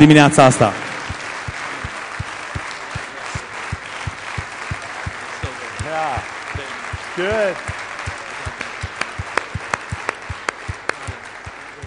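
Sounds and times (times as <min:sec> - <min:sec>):
speech: 0:00.0 - 0:00.8, 0:07.2 - 0:07.8
audience applauding: 0:00.0 - 0:11.8.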